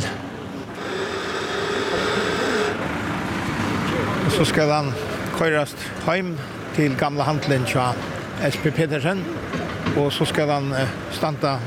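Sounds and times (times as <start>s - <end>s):
crane motor hoisting: 0.0s - 5.4s
speech: 4.4s - 11.6s.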